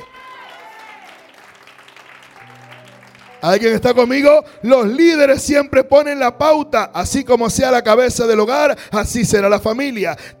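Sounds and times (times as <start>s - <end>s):
crowd applause: 0.0s - 3.5s
sustained keyboard chords: 1.8s - 10.3s
speech: 3.4s - 10.3s.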